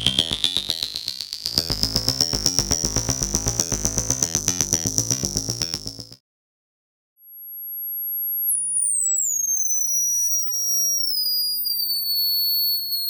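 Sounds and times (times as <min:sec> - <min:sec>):
electronic music: 0:00.0 - 0:06.2.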